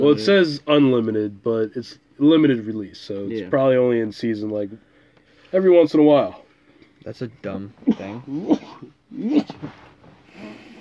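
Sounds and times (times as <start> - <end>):
speech: 0.0 - 4.9, 5.5 - 6.4, 7.0 - 9.8
person sneezing: 7.9 - 10.7.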